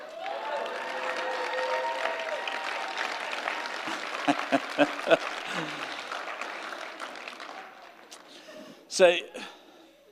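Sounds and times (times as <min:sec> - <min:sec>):
faint cheering and whoops: 0:00.0 - 0:04.9
crowd clapping: 0:00.0 - 0:08.7
laughter: 0:03.8 - 0:05.9
speech: 0:04.3 - 0:05.9, 0:09.0 - 0:09.6.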